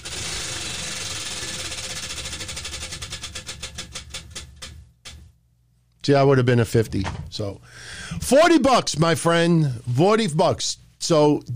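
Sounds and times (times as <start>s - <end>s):
spun prize wheel ratcheting: 0.0s - 4.8s
speech: 6.1s - 11.5s.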